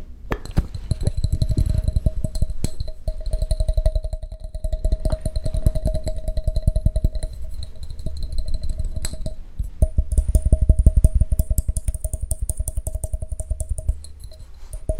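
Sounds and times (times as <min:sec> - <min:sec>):
lab beakers and test tubes clinking: 0:00.4 - 0:09.4, 0:13.8 - 0:14.9
steady bubbling hiss: 0:00.5 - 0:14.9.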